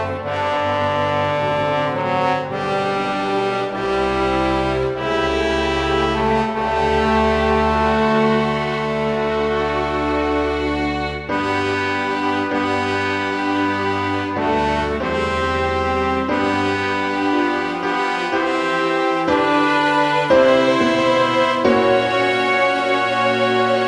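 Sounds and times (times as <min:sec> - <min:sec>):
trombone playing a prayer piece: 0:00.0 - 0:23.8.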